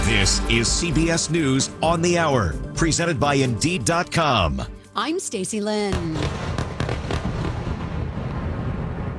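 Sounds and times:
speech: 0.1s - 6.6s
explosions during nighttime airstrikes: 5.9s - 9.1s.

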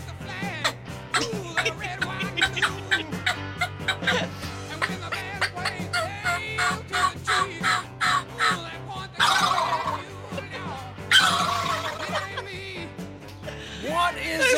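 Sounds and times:
laughter: 0.4s - 14.5s
turkey gobbling: 0.6s - 10.4s, 11.1s - 12.5s.

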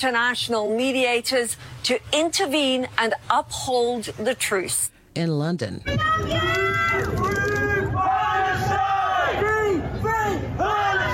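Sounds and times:
speech: 0.0s - 7.4s
crowd cheering and shouting: 5.9s - 11.1s
crowd chanting: 7.8s - 11.1s.

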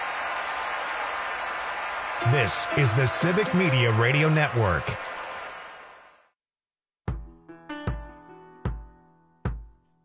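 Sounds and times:
crowd cheering: 0.0s - 6.3s
speech: 2.2s - 5.1s.

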